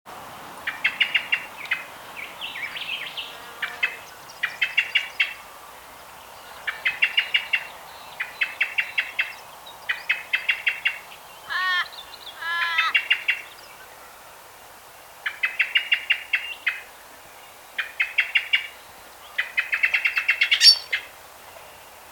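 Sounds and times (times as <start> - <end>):
steady background hiss: 0.1 - 22.1
common blackbird chinking calls: 0.6 - 5.6, 6.4 - 13.9, 17.8 - 21.1
thin notes from other birds: 0.6 - 22.1.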